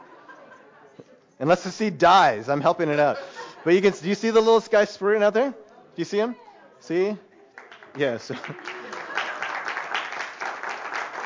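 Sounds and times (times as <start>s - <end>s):
laughter: 0.0s - 1.2s, 2.4s - 4.4s, 8.2s - 10.2s
speech: 1.0s - 7.3s, 8.0s - 8.7s
crowd applauding: 7.6s - 11.2s.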